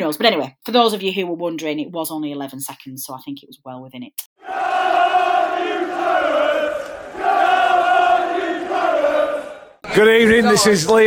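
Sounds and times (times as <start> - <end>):
speech: 0.0 - 5.0, 10.0 - 11.0
noisy pub crowd in the Vintage Claret chanting after a 3-0 football win: 4.4 - 10.1.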